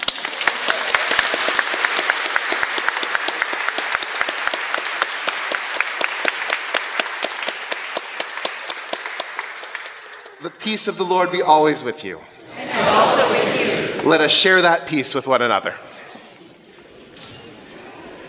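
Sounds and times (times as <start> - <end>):
audience clapping: 0.0 - 10.9
speech: 10.4 - 13.0, 14.0 - 15.9.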